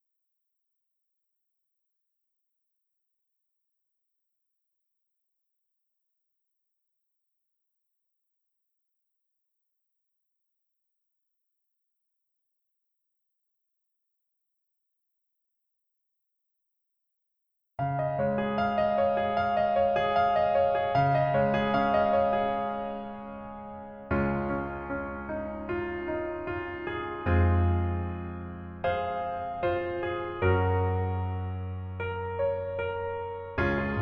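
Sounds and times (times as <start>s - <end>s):
piano melody backing track: 17.8s - 34.0s.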